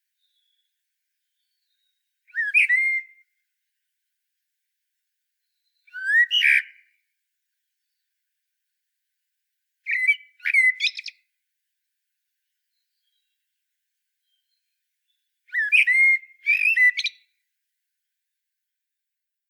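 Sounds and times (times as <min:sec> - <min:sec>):
common blackbird whistling: 0:02.3 - 0:03.2, 0:05.9 - 0:06.7, 0:15.5 - 0:17.2.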